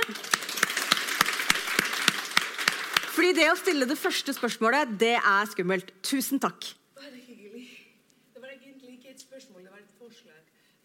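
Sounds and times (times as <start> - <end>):
audience applause: 0.0 - 3.8
speech: 3.2 - 6.8.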